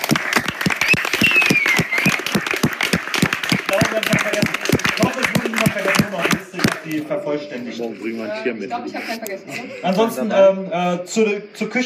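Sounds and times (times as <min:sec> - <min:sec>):
audience applause: 0:00.0 - 0:06.9
speech: 0:07.0 - 0:11.8.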